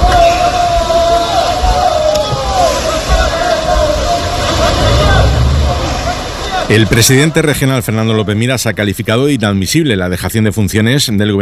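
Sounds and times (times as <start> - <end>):
crowd of migrants shouting and calling out: 0.0 - 7.6
rough, loud rumbling noise: 0.0 - 8.1
speedboat engine droning and whining: 0.0 - 8.3
speech: 6.7 - 11.4.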